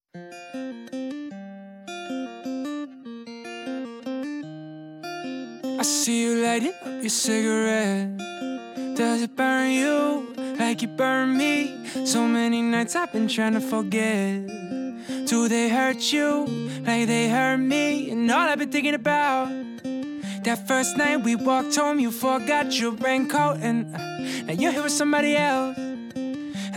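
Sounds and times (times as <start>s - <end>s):
acoustic music: 0.1s - 26.7s.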